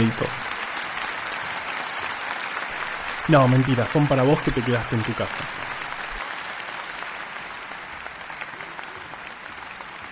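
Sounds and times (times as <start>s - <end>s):
speech: 0.0s - 0.5s, 3.3s - 5.7s
applause: 0.0s - 10.1s.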